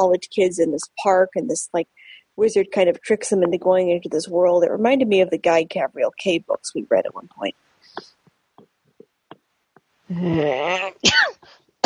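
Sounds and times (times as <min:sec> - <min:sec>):
speech: 0:00.0 - 0:08.1, 0:10.1 - 0:11.8
person coughing: 0:11.0 - 0:11.8.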